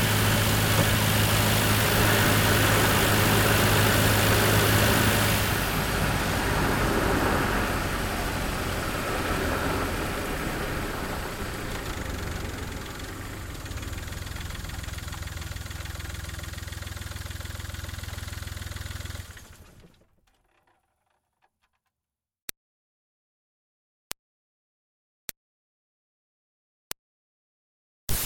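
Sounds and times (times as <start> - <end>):
2005 Smart Fortwo car driving fast, recorded onboard: 0.0 - 19.9.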